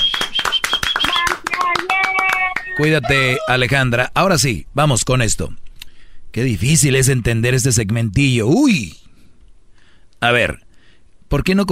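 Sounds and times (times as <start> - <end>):
hand clapping: 0.0 - 2.9
speech: 2.8 - 5.6, 6.3 - 9.0, 10.2 - 10.6, 11.3 - 11.7.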